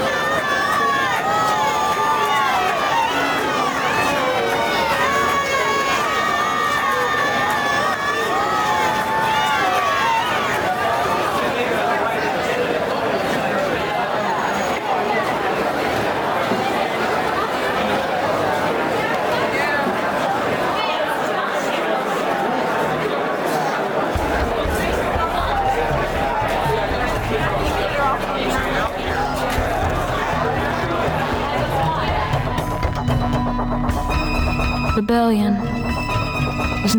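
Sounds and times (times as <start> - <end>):
people shouting in a celebrating crowd: 0.0 - 11.4, 24.1 - 34.8
crowd celebrating newly won freedom, running through the streets: 0.0 - 36.9.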